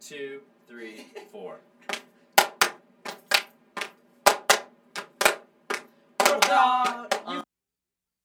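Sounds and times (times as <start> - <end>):
speech: 0.1 - 2.0
rhythmic hand clapping: 1.9 - 7.4.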